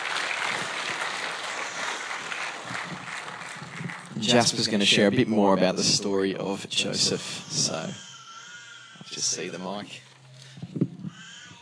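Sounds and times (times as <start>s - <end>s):
audience applause: 0.0s - 4.6s
speech: 4.2s - 8.1s, 9.2s - 10.1s.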